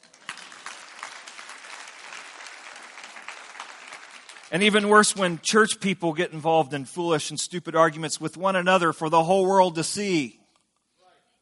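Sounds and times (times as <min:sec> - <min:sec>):
audience clapping: 0:00.0 - 0:05.6
speech: 0:04.5 - 0:10.4.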